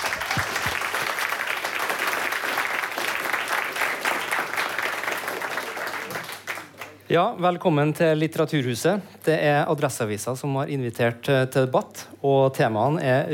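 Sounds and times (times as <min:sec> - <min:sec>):
audience applause: 0:00.0 - 0:07.0
speech: 0:07.1 - 0:13.3.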